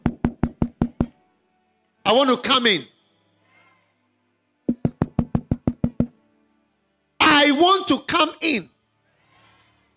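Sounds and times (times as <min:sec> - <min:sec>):
knocking on a door: 0:00.0 - 0:01.1, 0:04.7 - 0:06.1
speech: 0:02.1 - 0:02.9, 0:07.5 - 0:08.7.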